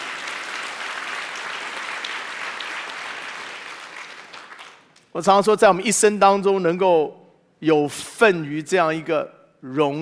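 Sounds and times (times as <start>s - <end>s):
audience applause: 0.0s - 5.0s
speech: 5.2s - 9.9s.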